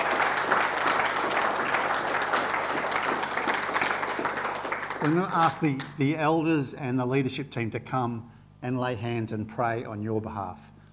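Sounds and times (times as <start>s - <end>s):
audience applauding: 0.0s - 6.0s
speech: 5.0s - 10.7s.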